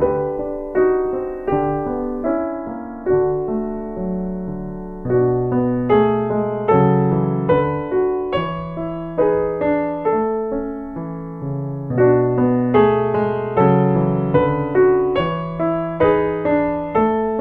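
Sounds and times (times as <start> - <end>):
relaxing chill out piano music loop: 0.0 - 17.3.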